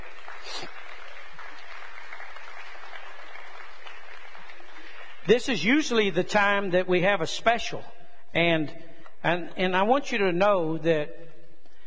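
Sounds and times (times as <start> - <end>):
crowd round of applause: 0.0 - 5.3
speech: 5.3 - 11.2.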